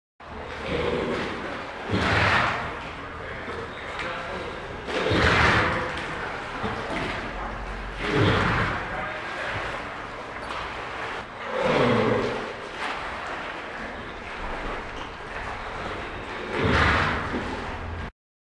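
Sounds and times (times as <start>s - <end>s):
farm animal grunts: 0.4s - 9.9s, 11.4s - 12.6s, 14.0s - 18.0s
farm animal snorts: 0.5s - 4.0s, 4.8s - 9.9s, 11.4s - 12.6s, 15.3s - 17.8s.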